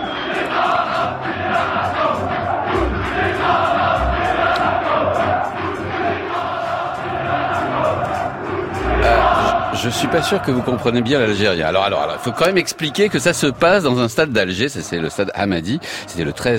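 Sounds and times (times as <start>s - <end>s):
football supporters chanting in the Hamadi stadium in Algiers: 0.0s - 13.2s
speech: 9.9s - 16.5s.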